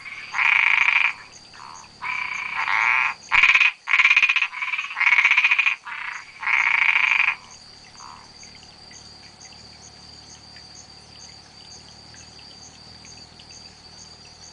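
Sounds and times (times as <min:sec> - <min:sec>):
spotted tree frog Boana albopunctata giving rasping pulsed calls: 0:00.0 - 0:08.5.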